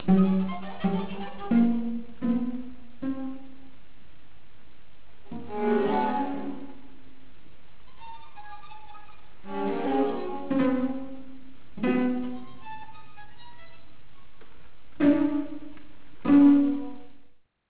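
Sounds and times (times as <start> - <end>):
sextet playing: 0.0 - 3.7, 7.9 - 17.2.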